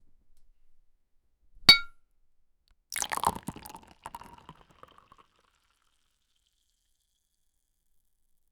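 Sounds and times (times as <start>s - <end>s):
glassware clinking: 1.7s - 1.9s, 3.0s - 5.1s
liquid pouring: 2.9s - 5.9s
bottle opening: 3.0s - 5.1s.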